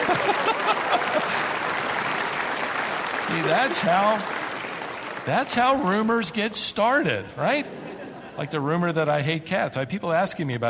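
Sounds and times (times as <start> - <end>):
laughter: 0.0 - 1.8, 7.4 - 9.0
audience applause: 0.0 - 6.4
speech: 3.3 - 4.4, 5.2 - 7.8, 8.4 - 10.6.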